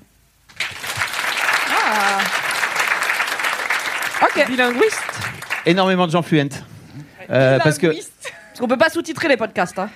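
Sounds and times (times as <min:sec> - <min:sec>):
audience applause: 0:00.5 - 0:06.0
speech: 0:04.4 - 0:06.7, 0:07.3 - 0:09.9.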